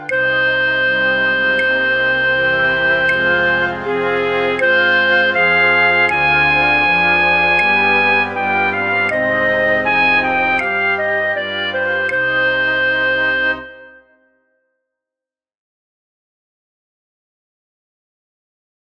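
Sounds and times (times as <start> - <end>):
flute in a flute orchestra for practice tracks: 0.0 - 14.5.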